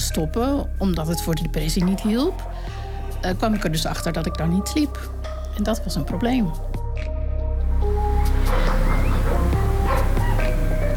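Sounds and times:
speech: 0.1s - 7.1s
dog barking: 8.2s - 10.6s.

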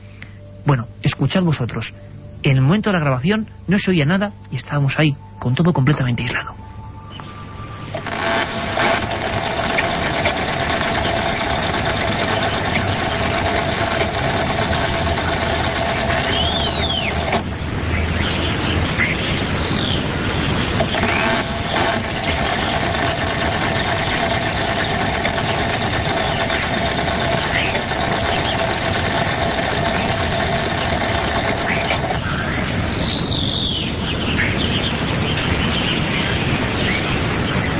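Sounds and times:
faint hum: 0.0s - 37.7s
speech: 0.6s - 6.6s
steady mechanical drone at an isolated spot: 5.2s - 37.7s
drawn-out creaks: 7.8s - 17.6s, 20.5s - 32.8s.

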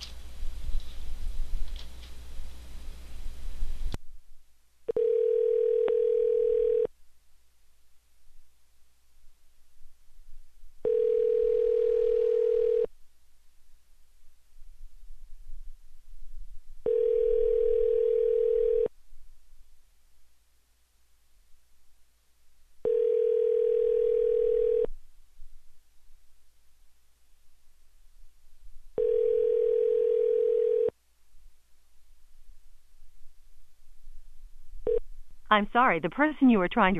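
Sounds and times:
telephone ringing tone while calling again: 4.9s - 6.9s, 10.8s - 12.9s, 16.8s - 18.9s, 22.8s - 24.9s, 29.0s - 30.9s, 34.8s - 35.0s
speech: 35.5s - 36.9s.

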